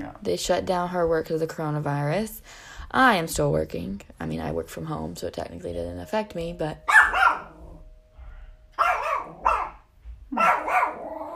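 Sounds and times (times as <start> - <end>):
speech: 0.1 - 7.2
dog barking: 6.9 - 7.6, 8.8 - 11.3.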